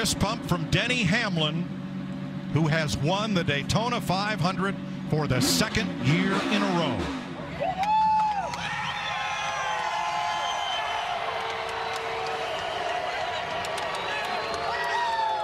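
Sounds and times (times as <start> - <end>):
speech: 0.0 - 1.8, 2.5 - 7.2
race crowd booing: 7.5 - 15.4.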